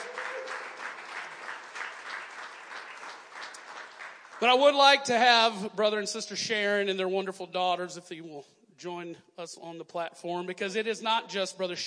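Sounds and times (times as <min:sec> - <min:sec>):
crowd clapping: 0:00.0 - 0:05.0
speech: 0:04.4 - 0:11.8.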